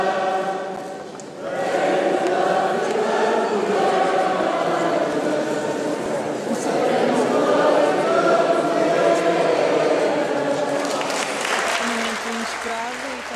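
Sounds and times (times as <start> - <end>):
voices mingling: 1.6 - 13.3
audience applause: 10.4 - 13.3.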